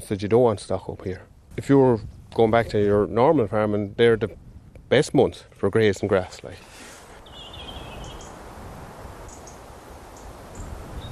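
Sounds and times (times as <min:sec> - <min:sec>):
gentle breeze through trees: 0:00.0 - 0:11.1
speech: 0:00.1 - 0:06.8
birdsong: 0:06.5 - 0:08.5, 0:09.2 - 0:11.1.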